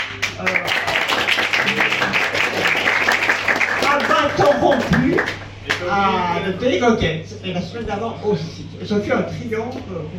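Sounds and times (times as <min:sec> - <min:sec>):
audience applause: 0:00.0 - 0:05.8
speech: 0:05.9 - 0:10.1.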